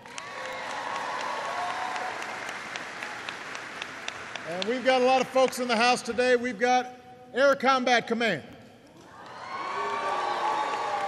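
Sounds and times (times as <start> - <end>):
audience applause: 0.0 - 5.8, 9.1 - 11.0
speech: 4.5 - 8.5.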